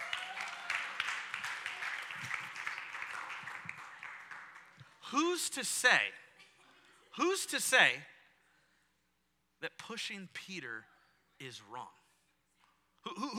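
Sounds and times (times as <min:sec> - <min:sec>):
audience applause: 0:00.0 - 0:05.2
speech: 0:05.1 - 0:06.2, 0:07.2 - 0:08.1, 0:09.6 - 0:12.0, 0:13.1 - 0:13.3.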